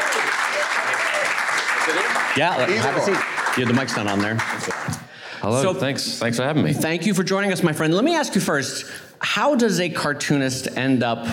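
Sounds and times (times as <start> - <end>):
audience round of applause: 0.0 - 5.1
speech: 2.4 - 11.3.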